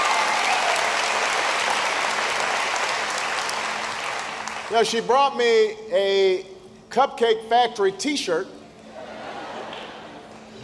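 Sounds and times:
audience clapping: 0.0 - 5.0, 9.6 - 10.5
speech: 4.7 - 8.6
laughter: 8.9 - 10.4.

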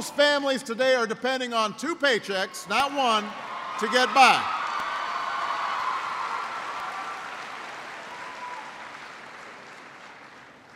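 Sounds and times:
speech: 0.0 - 4.6
large crowd applause: 3.4 - 10.7.

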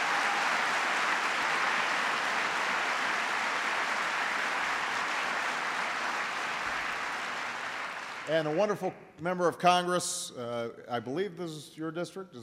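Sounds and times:
large crowd applauding: 0.0 - 8.8
speech: 8.3 - 12.4.

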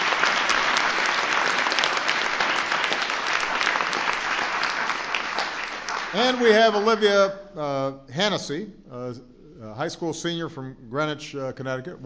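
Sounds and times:
audience applause: 0.0 - 7.1
speech: 6.2 - 12.0.

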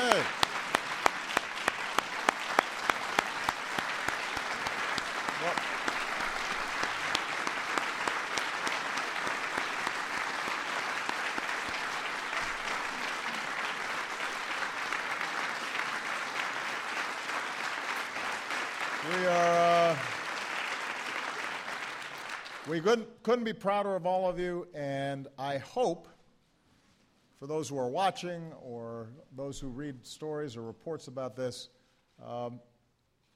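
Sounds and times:
crowd applause: 0.0 - 22.8
speech: 22.7 - 26.1, 27.4 - 32.7.

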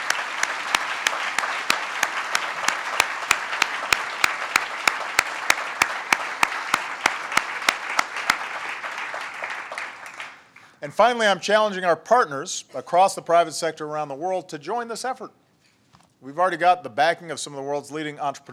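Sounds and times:
audience applause: 0.0 - 10.7
speech: 10.8 - 15.4, 16.2 - 18.5.

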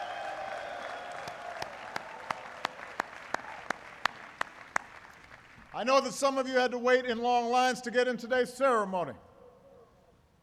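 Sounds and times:
graduation ceremony applause: 0.0 - 5.7
speech: 5.8 - 9.3.

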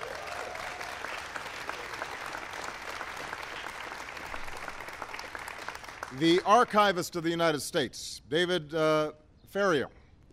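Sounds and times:
audience applause: 0.0 - 6.5
speech: 6.2 - 10.0.

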